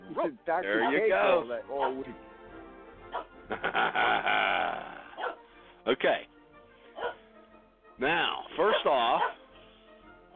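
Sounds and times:
speech: 0.1 - 2.3, 3.1 - 4.9, 5.8 - 6.3, 8.0 - 9.4
dog barking and growling: 1.8 - 2.0, 3.1 - 3.4, 4.7 - 5.4, 7.0 - 7.2, 8.7 - 9.4
laughter: 3.4 - 5.2.

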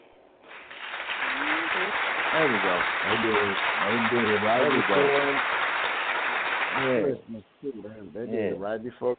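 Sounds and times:
round of applause: 0.4 - 7.1
speech: 2.3 - 5.6, 6.8 - 9.1.

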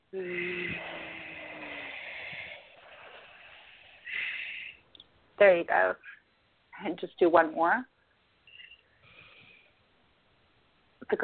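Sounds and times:
speech: 0.1 - 0.9, 5.4 - 6.2, 6.8 - 7.9, 11.1 - 11.2
deep breath in and out during a guided healing session: 0.1 - 4.9, 8.5 - 9.9.

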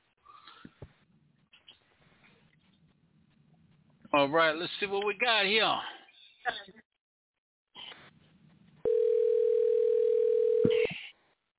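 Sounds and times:
speech: 4.2 - 6.8
telephone line ringing during phone call: 8.9 - 10.8.

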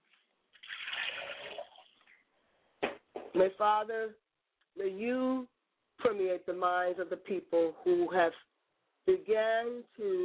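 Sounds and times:
liquid poured out as a libation: 0.5 - 2.2
speech: 3.4 - 4.2, 4.8 - 10.2.

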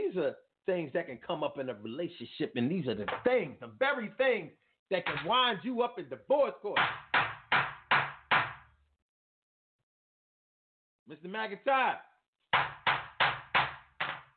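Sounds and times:
speech: 0.1 - 7.1, 11.1 - 12.7
judge banging a gavel: 3.0 - 3.4, 5.0 - 5.4, 6.8 - 8.7, 12.5 - 14.3.

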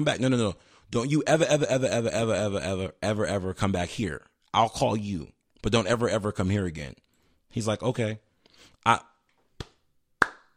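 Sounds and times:
speech: 0.0 - 9.1
person clapping hands reacting to a funny breakup story: 9.6 - 10.5.

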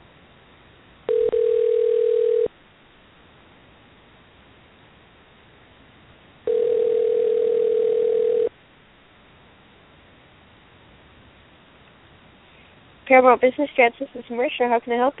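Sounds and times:
faint hiss: 0.0 - 15.1
telephone line ringing on the caller's end: 1.1 - 2.5, 6.5 - 8.5
speech: 13.1 - 15.1.

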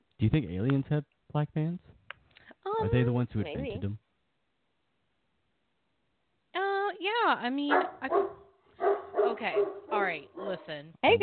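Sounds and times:
speech: 0.2 - 2.0, 2.6 - 4.0, 7.0 - 8.4, 9.3 - 11.2
dog barking: 7.7 - 10.8.

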